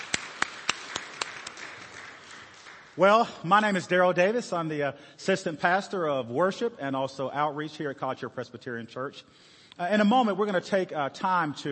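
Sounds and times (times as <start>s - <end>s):
audience applauding the choir: 0.0s - 3.4s
speech: 3.0s - 11.7s.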